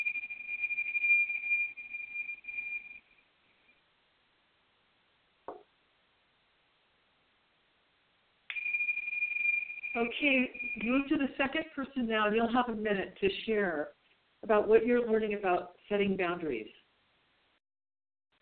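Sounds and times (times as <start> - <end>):
chime rung: 0.0 - 3.2, 8.5 - 11.6
speech: 10.0 - 16.8.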